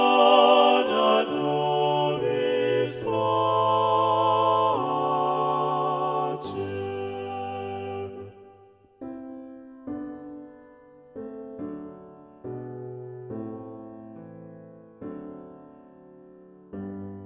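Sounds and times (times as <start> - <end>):
sacred mass music: 0.0 - 8.7.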